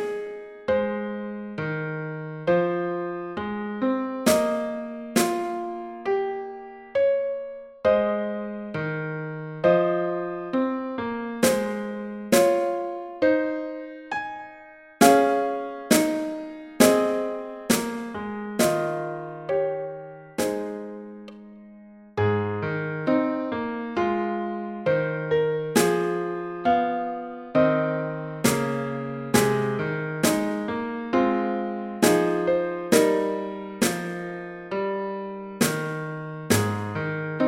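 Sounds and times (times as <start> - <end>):
piano at 67 bpm: 0.0 - 37.4
drum at 67 bpm: 4.3 - 5.8, 11.4 - 12.9, 15.0 - 19.1, 20.4 - 20.9, 28.5 - 30.7, 32.0 - 34.2, 35.6 - 37.0.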